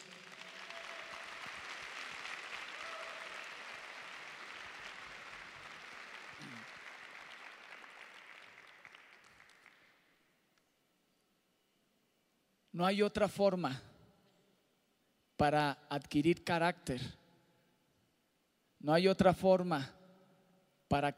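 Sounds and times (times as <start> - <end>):
audience applause: 0.0 - 10.0
speech: 12.8 - 13.9, 15.4 - 17.2, 18.8 - 20.0, 20.9 - 21.1.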